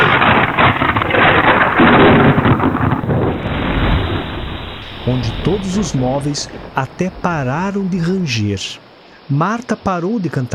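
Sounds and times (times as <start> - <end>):
thunder crash in a thunderstorm: 0.0 - 8.4
speech: 5.1 - 10.5.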